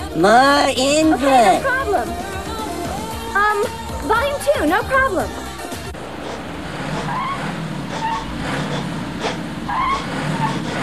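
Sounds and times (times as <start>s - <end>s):
Nova van being driven badly: 0.0s - 10.8s
speech: 0.2s - 2.3s, 3.3s - 5.4s.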